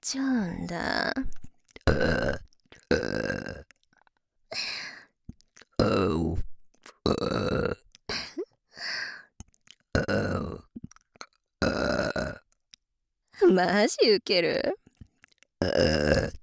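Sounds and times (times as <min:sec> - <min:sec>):
speech: 0:00.0 - 0:03.0, 0:13.6 - 0:14.8, 0:15.6 - 0:16.2
person burping: 0:01.8 - 0:03.7, 0:05.8 - 0:06.4, 0:07.0 - 0:08.3, 0:09.9 - 0:10.7, 0:11.6 - 0:12.4, 0:15.6 - 0:16.4.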